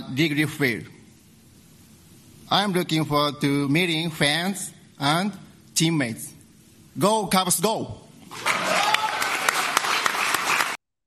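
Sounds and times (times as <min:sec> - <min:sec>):
speech: 0:00.1 - 0:01.0, 0:02.5 - 0:06.4, 0:07.0 - 0:08.8
crowd cheering and whooping: 0:08.3 - 0:10.8
steady applause: 0:08.3 - 0:10.8.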